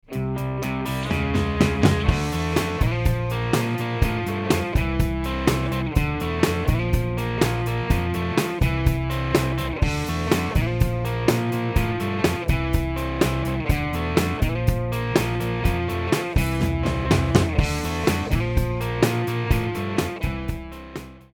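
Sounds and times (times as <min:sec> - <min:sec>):
overdubbed ensemble: 0:00.1 - 0:21.1.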